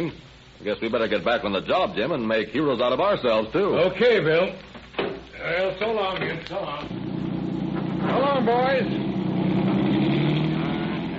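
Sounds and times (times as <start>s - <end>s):
speech: 0.0s - 7.1s, 8.1s - 9.0s
police car accelerating away: 6.9s - 11.1s.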